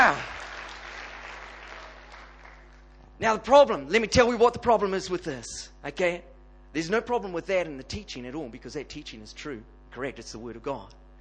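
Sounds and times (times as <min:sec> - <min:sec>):
crowd clapping: 0:00.0 - 0:03.0
speech: 0:00.1 - 0:00.3, 0:03.2 - 0:11.0.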